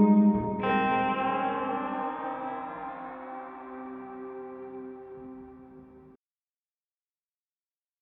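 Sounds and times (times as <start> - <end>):
symmetry reverb: 0.0 - 6.1.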